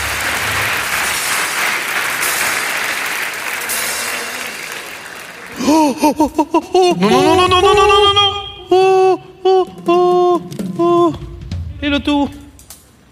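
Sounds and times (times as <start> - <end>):
applause: 0.0 - 6.1
laughter: 3.5 - 10.3
speech: 5.8 - 11.2, 11.8 - 12.4.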